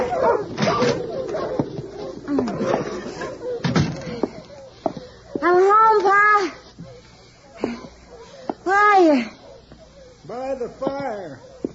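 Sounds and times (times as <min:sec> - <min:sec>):
door banging: 0:00.0 - 0:04.2
sled dogs barking and yelping: 0:00.0 - 0:11.7.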